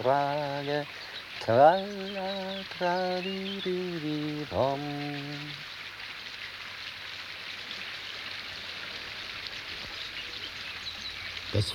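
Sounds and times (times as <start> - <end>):
speech: 0.0 - 5.6, 11.5 - 11.7
dark river flowing through flat wide land: 0.0 - 11.7
small waves lapping: 0.0 - 11.7.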